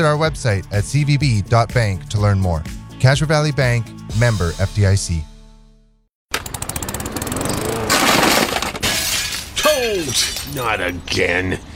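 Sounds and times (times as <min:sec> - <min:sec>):
speech: 0:00.0 - 0:05.3, 0:09.8 - 0:11.7
window glass shattering: 0:07.9 - 0:10.9.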